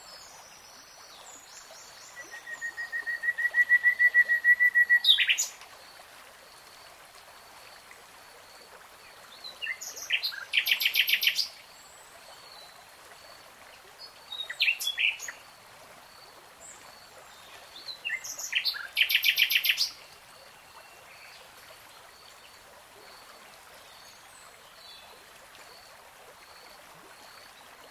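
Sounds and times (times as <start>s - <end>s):
nightingale song: 0.0s - 5.6s, 9.4s - 11.6s, 14.0s - 15.4s, 17.5s - 21.5s.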